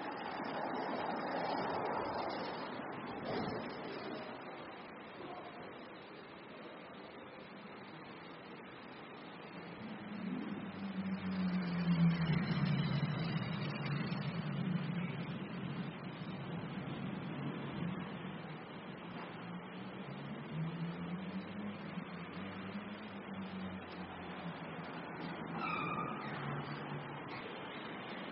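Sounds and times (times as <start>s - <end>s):
car park ambience: 0.0s - 28.3s.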